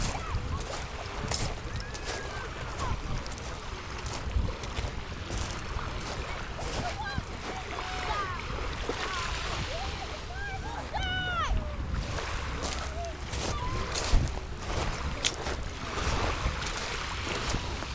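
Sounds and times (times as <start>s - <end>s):
voices: 0.0s - 12.0s, 12.6s - 15.6s
waves washing onto a beach strewn with dried seaweed: 0.0s - 17.9s
wind: 0.0s - 17.9s.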